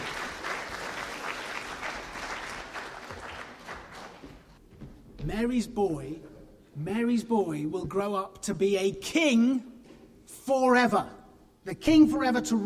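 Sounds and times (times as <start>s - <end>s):
applause: 0.0s - 4.6s
speech: 5.2s - 9.7s, 10.5s - 12.6s.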